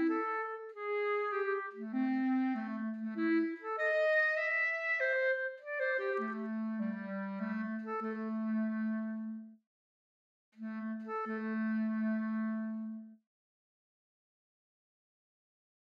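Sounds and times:
clarinet: 0.0 - 9.6, 10.6 - 13.2.

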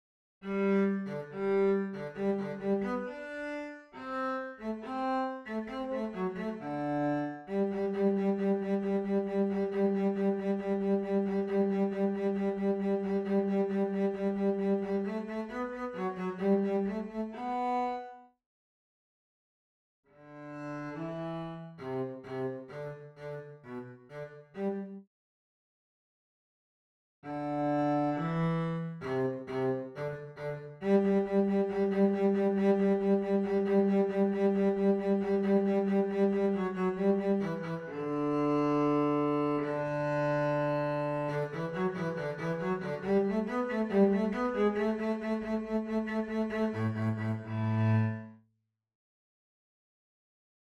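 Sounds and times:
cello: 0.4 - 18.3, 20.2 - 25.1, 27.2 - 48.4.

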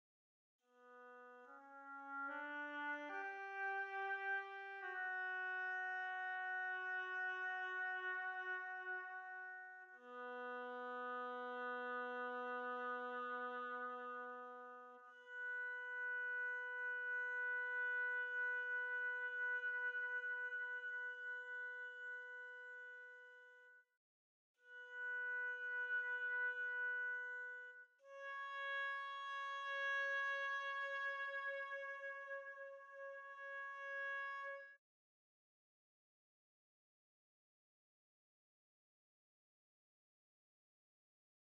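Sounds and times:
oboe: 0.7 - 23.7, 24.6 - 34.8.

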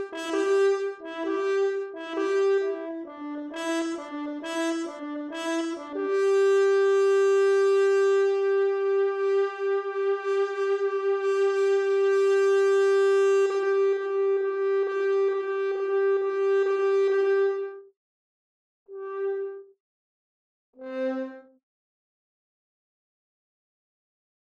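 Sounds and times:
horn: 0.0 - 17.8, 18.9 - 19.6.

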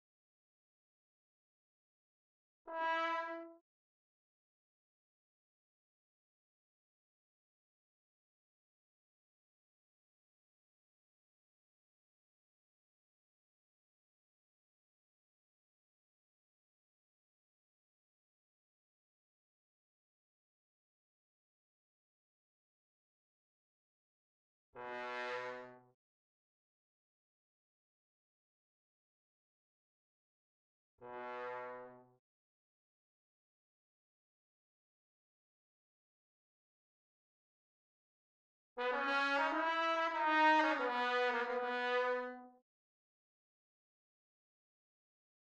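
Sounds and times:
trombone: 2.7 - 3.6, 24.8 - 25.8, 31.0 - 32.0, 38.8 - 42.5.

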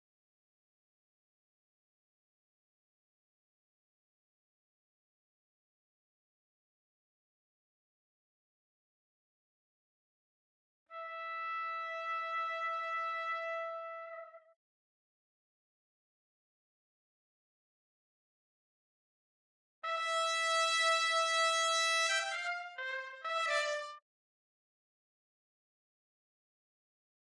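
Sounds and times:
trumpet: 10.9 - 14.6, 19.8 - 24.0.

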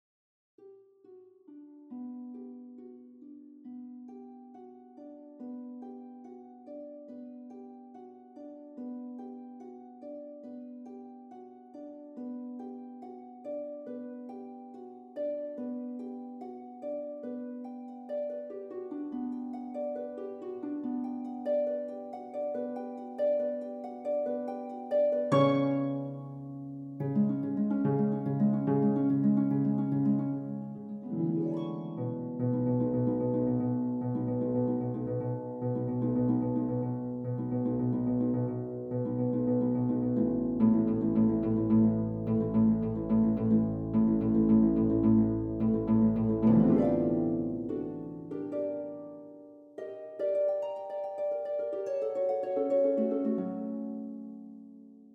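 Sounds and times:
harp: 0.6 - 55.1.

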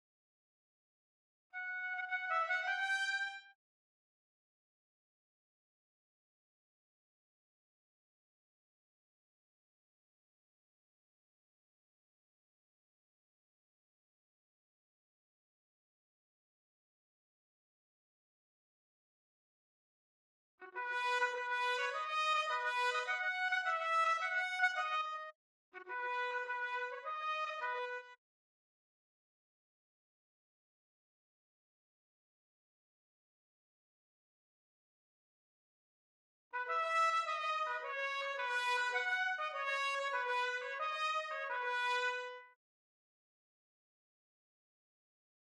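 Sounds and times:
trumpet: 1.6 - 3.6, 20.6 - 28.2, 36.6 - 42.6.

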